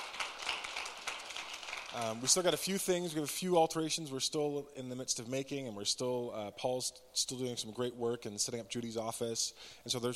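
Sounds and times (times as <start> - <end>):
audience applause: 0.0 - 2.4
speech: 1.9 - 10.1.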